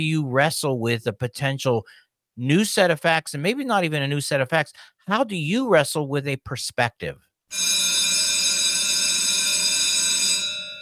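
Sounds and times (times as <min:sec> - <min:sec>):
speech: 0:00.0 - 0:08.0
bell ringing: 0:07.5 - 0:10.8.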